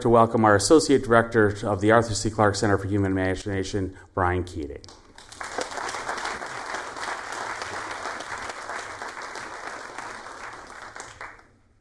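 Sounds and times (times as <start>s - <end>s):
speech: 0.0s - 5.0s
audience applause: 5.2s - 11.6s.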